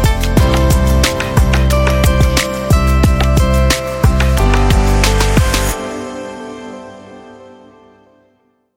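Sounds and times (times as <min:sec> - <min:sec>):
fashion ambient beat: 0:00.0 - 0:05.8.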